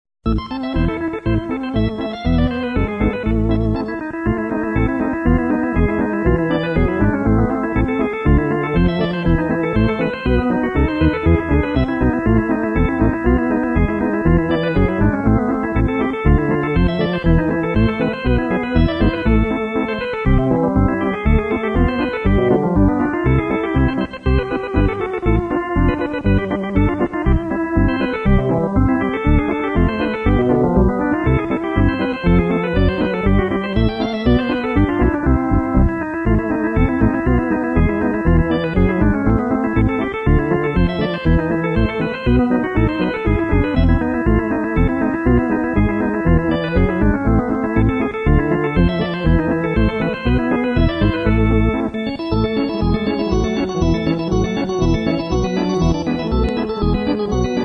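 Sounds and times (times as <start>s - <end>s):
Hammond organ: 0.2s - 57.6s.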